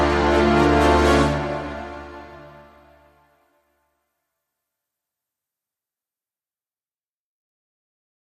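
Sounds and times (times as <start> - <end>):
strings: 0.0 - 3.6
brass: 0.0 - 3.9.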